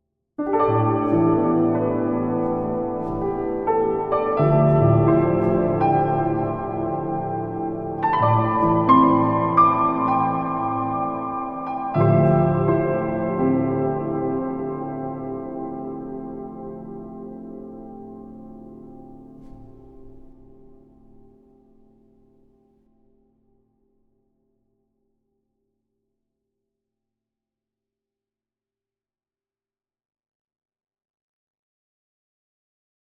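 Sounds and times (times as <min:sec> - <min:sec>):
piano with reverb: 0:00.4 - 0:22.7.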